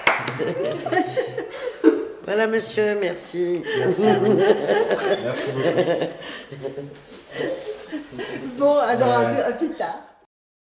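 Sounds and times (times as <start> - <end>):
audience applause: 0.0 - 0.9
laughter: 0.0 - 2.2, 3.6 - 9.8
speech: 0.4 - 1.2, 2.3 - 7.5, 8.1 - 10.0.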